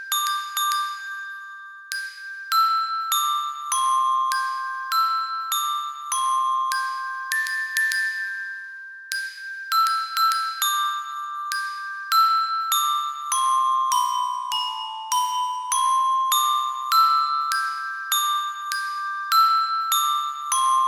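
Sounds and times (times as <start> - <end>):
glockenspiel: 0.0 - 20.8.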